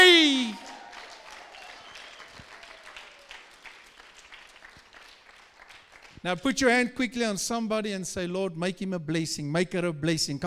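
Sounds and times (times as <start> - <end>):
audience clapping: 0.0 - 6.3
speech: 6.2 - 10.4.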